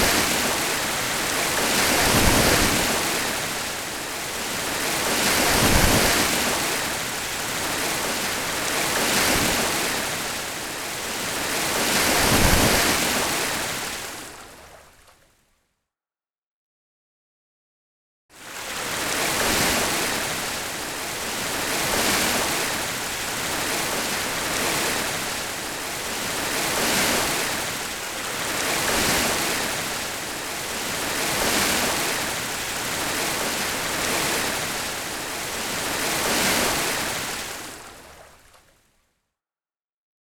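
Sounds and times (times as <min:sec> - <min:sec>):
ocean wave: 0:00.0 - 0:15.0, 0:18.4 - 0:38.7.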